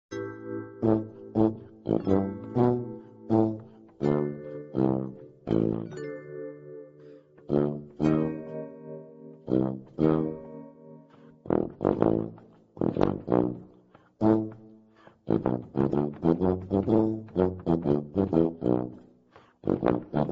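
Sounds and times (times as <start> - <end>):
tuba: 0.1 - 6.2, 7.0 - 20.2.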